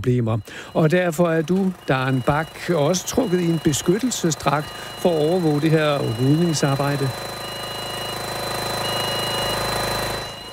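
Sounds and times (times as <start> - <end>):
speech: 0.0 - 7.4
industrial vacuum cleaner removing caterpillars: 0.7 - 10.5.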